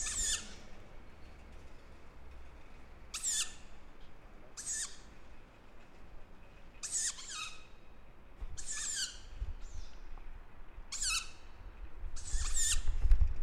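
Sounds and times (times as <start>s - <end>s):
tawny owl: 0.0s - 0.8s, 3.1s - 3.8s, 4.5s - 5.2s, 6.8s - 7.9s, 8.5s - 10.0s, 10.9s - 11.6s, 12.2s - 13.0s.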